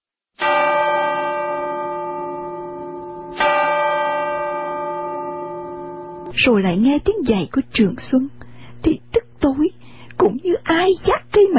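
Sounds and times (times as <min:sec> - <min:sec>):
clock striking seven o'clock: 0:00.4 - 0:06.3
speech: 0:06.4 - 0:11.5.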